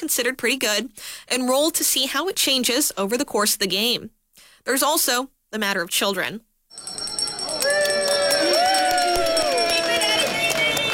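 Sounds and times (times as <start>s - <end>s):
speech: 0.0s - 7.0s
bell ringing: 6.7s - 10.9s.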